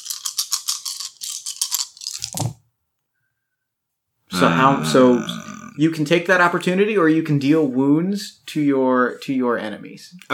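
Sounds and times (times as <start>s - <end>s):
handful of dice rattling: 0.0s - 2.6s
speech: 4.4s - 10.3s.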